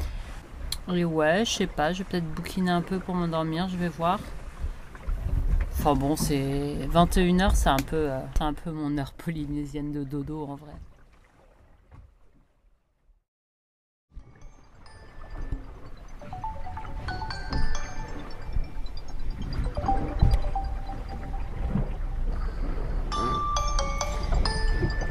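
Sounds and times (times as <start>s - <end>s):
speech: 0.9s - 4.4s, 5.8s - 10.9s
alarm ringing: 14.4s - 25.0s.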